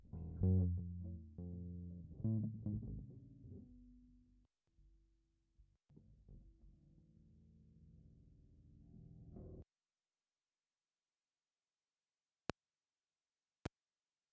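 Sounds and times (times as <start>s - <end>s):
bass: 0.0s - 4.4s, 6.0s - 9.6s.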